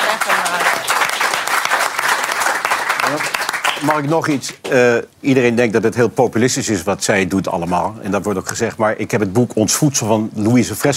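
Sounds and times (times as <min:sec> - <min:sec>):
audience applause: 0:00.0 - 0:04.4
speech: 0:03.1 - 0:10.9.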